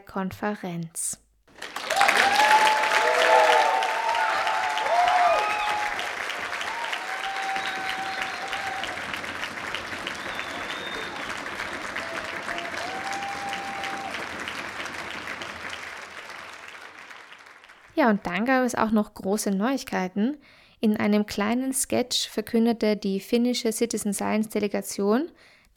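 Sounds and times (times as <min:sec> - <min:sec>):
speech: 0:00.1 - 0:01.2, 0:18.0 - 0:25.7
conference audience applause: 0:01.5 - 0:18.2.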